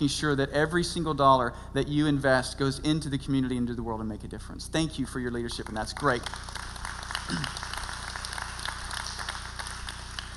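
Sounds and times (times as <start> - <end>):
speech: 0.0 - 6.7, 7.3 - 7.7
audience applause: 5.7 - 10.3.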